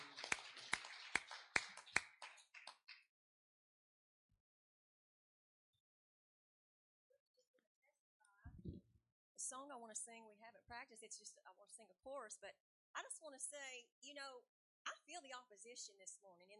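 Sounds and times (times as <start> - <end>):
audience clapping along: 0.0 - 3.1
speech: 9.5 - 16.5.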